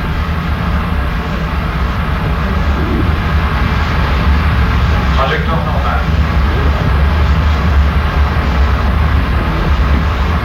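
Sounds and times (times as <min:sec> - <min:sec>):
rocket boosters igniting at liftoff: 0:00.0 - 0:10.4.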